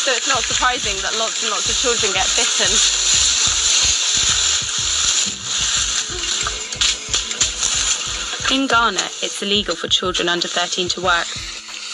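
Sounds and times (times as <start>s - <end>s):
speech: 0.0s - 3.2s, 8.5s - 11.5s
footsteps scraping through dry cocoa leaf litter: 0.0s - 9.4s.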